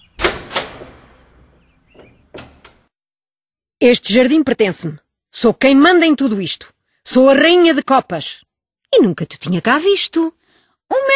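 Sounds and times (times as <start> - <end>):
door opening: 0.0 - 2.9
speech: 3.8 - 11.1.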